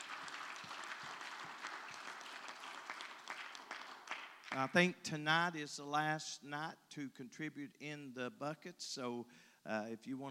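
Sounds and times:
audience clapping: 0.0 - 4.9
speech: 4.5 - 10.3.

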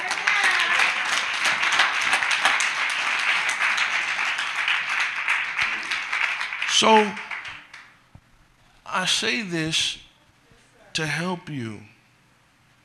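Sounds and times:
audience applause and hand clapping at a live gathering: 0.0 - 8.0
speech: 6.8 - 7.2, 9.0 - 10.0, 11.0 - 11.9.

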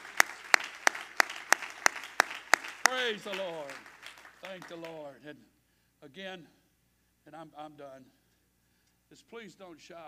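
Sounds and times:
audience clapping in unison rhythm: 0.0 - 5.1
speech: 3.0 - 6.6, 7.2 - 8.2, 9.1 - 10.0.

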